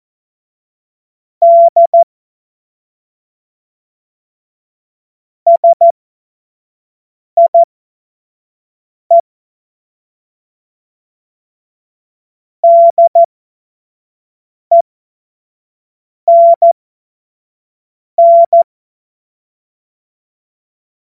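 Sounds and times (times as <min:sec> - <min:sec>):
CW Morse code beeps: 0:01.4 - 0:02.1, 0:05.5 - 0:05.9, 0:07.4 - 0:07.7, 0:12.6 - 0:13.3, 0:16.3 - 0:16.8, 0:18.2 - 0:18.7.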